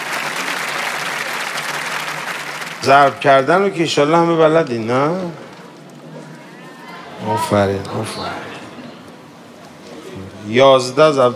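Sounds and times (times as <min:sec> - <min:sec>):
audience clapping at a Persian poem recitation praising Imam Ali: 0:00.0 - 0:05.9
speech: 0:02.8 - 0:05.4, 0:07.2 - 0:08.5, 0:10.5 - 0:11.3.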